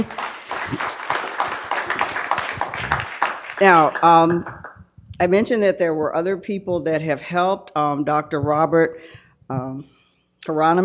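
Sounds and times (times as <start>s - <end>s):
speech: 0.0s - 1.0s, 3.6s - 4.6s, 5.2s - 10.8s
audience applause: 0.0s - 4.8s.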